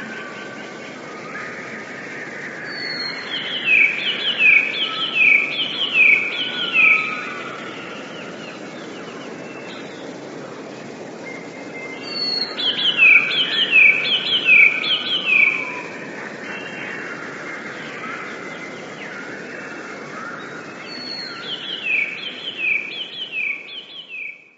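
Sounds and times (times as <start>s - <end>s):
Eurasian blue tit song: 0.0s - 24.5s
background hiss: 0.0s - 24.5s.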